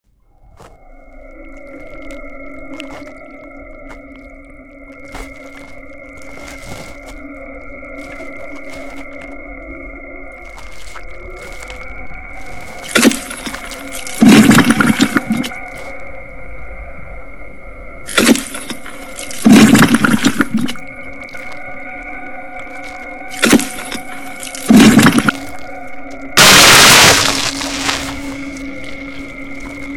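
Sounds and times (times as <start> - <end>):
monster: 11.3 - 15.6, 18.1 - 20.8, 23.3 - 25.6, 26.4 - 29.1.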